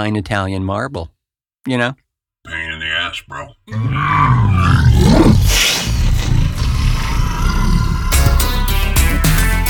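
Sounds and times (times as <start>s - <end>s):
speech: 0.0s - 5.8s
rough noisy roaring: 3.7s - 8.8s
deep animal growl: 3.7s - 9.6s.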